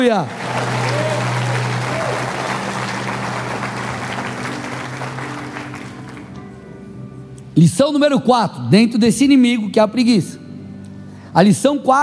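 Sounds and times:
speech: 0:00.0 - 0:00.7, 0:07.6 - 0:10.4, 0:11.4 - 0:12.0
audience applause: 0:00.0 - 0:06.4.

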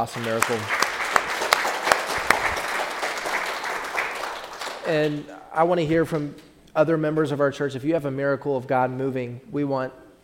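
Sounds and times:
speech: 0:00.0 - 0:00.8, 0:04.9 - 0:10.0
crowd clapping: 0:00.0 - 0:05.3.

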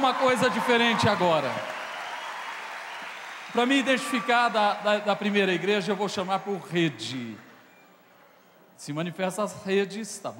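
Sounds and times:
audience applause: 0:00.0 - 0:07.7
speech: 0:00.1 - 0:01.8, 0:03.5 - 0:07.4, 0:08.8 - 0:10.3.

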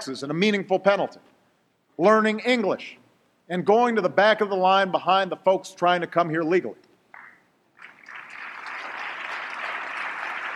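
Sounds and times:
speech: 0:00.0 - 0:01.4, 0:02.0 - 0:06.9
mixed audience applause: 0:07.8 - 0:10.5.

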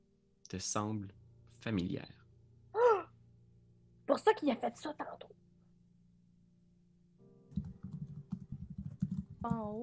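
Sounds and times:
low steady hum: 0:00.0 - 0:07.3
speech: 0:00.5 - 0:02.2, 0:04.1 - 0:05.4, 0:09.4 - 0:09.8
rapid typing on a typewriter: 0:07.6 - 0:09.5.

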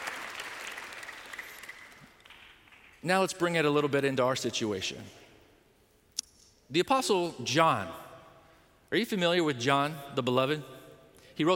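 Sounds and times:
audience clapping: 0:00.0 - 0:03.0
speech: 0:03.0 - 0:05.2, 0:06.7 - 0:08.1, 0:08.9 - 0:10.8, 0:11.4 - 0:11.5.

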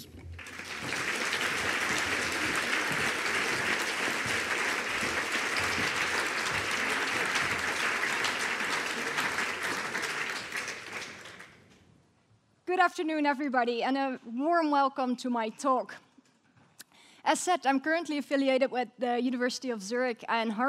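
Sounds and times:
audience applause welcoming a speaker at a talk: 0:00.0 - 0:11.6
speech: 0:12.8 - 0:16.0, 0:17.3 - 0:20.6.

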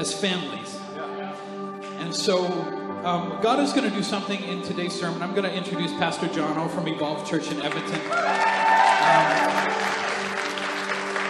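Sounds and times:
speech: 0:00.0 - 0:00.7, 0:02.0 - 0:09.6
audience applause: 0:07.7 - 0:11.2.

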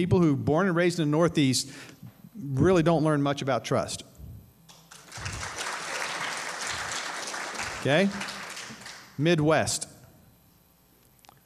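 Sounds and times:
speech: 0:00.0 - 0:04.1, 0:07.8 - 0:08.3, 0:09.2 - 0:09.9
audience applause: 0:04.9 - 0:09.2.

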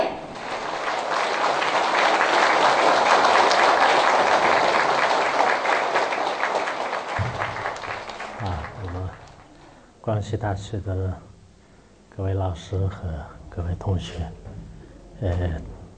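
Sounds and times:
warm audience applause: 0:00.0 - 0:09.8
speech: 0:10.1 - 0:11.3, 0:12.2 - 0:14.4, 0:15.2 - 0:15.7.

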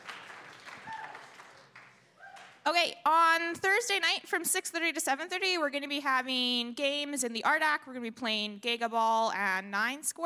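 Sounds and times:
crowd applauding: 0:00.0 - 0:02.6
faint cheers: 0:00.7 - 0:01.4, 0:02.2 - 0:02.6
speech: 0:02.6 - 0:10.2.

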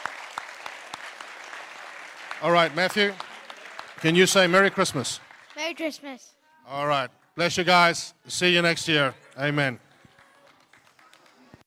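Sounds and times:
audience applause: 0:00.0 - 0:05.9, 0:08.4 - 0:11.6
speech: 0:02.4 - 0:03.2, 0:04.0 - 0:09.8.

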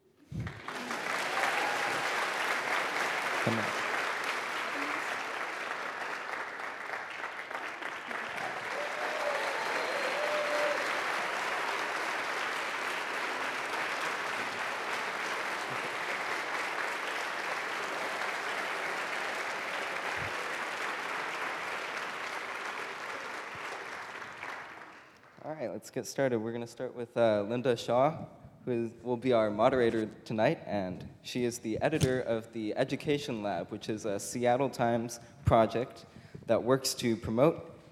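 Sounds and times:
audience round of applause: 0:00.4 - 0:25.3
speech: 0:03.4 - 0:03.8, 0:25.6 - 0:37.7.

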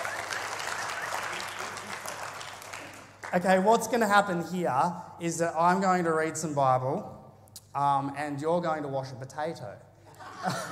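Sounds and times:
crowd round of applause: 0:00.0 - 0:03.5
speech: 0:03.3 - 0:10.7
laughter: 0:10.1 - 0:10.7.

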